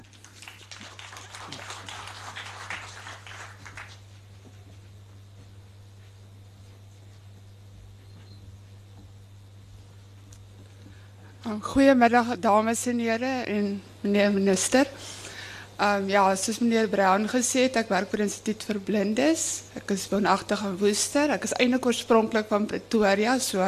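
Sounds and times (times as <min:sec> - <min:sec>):
audience applause: 0:00.0 - 0:04.2
speech: 0:11.5 - 0:15.2, 0:15.8 - 0:23.6.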